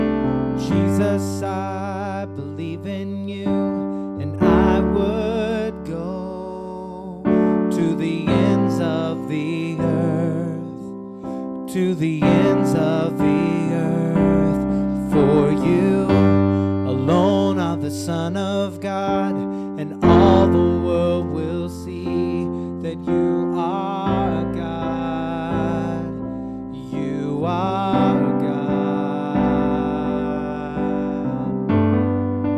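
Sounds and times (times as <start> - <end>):
alto voice singing: 0.2 - 11.0, 11.6 - 32.5.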